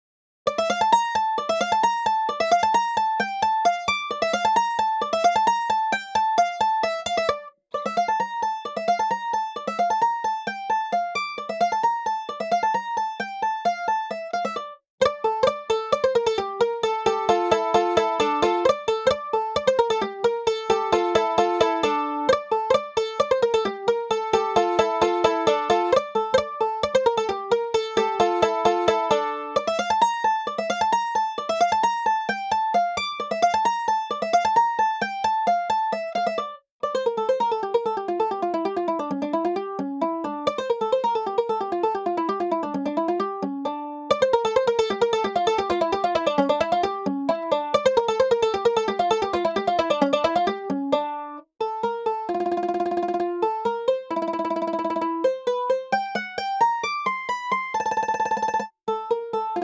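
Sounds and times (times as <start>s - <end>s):
mandolin: 0.5s - 59.6s.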